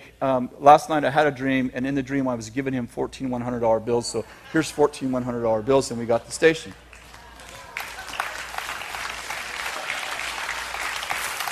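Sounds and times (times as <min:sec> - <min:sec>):
speech: 0:00.2 - 0:06.8
audience clapping: 0:06.6 - 0:11.5.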